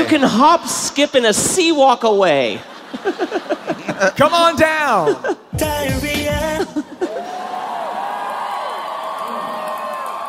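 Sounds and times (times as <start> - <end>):
speech: 0.0 - 6.8
laughter: 2.5 - 5.6, 6.4 - 7.8
live audience applause: 7.0 - 10.2.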